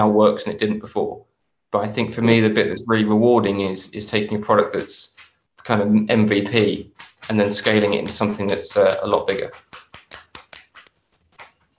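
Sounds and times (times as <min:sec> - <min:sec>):
speech: 0:00.0 - 0:09.7
dog scratching itself: 0:06.3 - 0:11.7.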